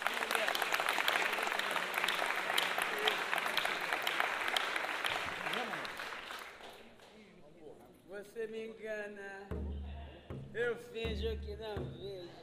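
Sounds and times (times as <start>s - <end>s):
audience applause for the composer: 0.0s - 7.0s
speech: 8.4s - 9.6s, 10.6s - 12.4s.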